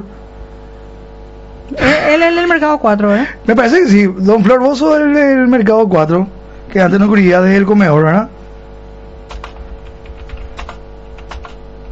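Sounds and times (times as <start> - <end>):
speech: 1.7 - 8.4
fingers typing on a computer keyboard: 9.2 - 11.8.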